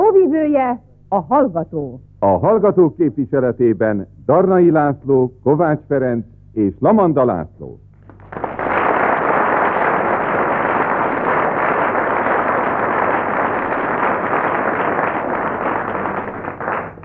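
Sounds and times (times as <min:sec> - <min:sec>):
speech: 0:00.4 - 0:07.9
audience applause: 0:08.0 - 0:17.0.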